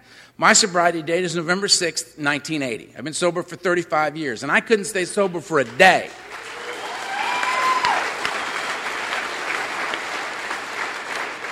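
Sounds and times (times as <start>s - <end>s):
speech: 0.4s - 6.3s
audience applause: 5.6s - 11.5s.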